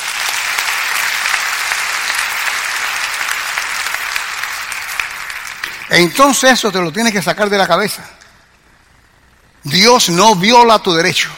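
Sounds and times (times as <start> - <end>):
audience applause: 0.0 - 6.4
speech: 6.0 - 8.2, 9.6 - 11.3.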